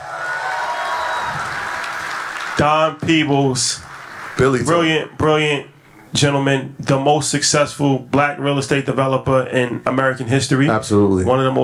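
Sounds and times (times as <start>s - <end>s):
crowd whooping and shouting: 0.0s - 2.4s
crowd applauding: 0.0s - 4.6s
speech: 2.6s - 11.6s.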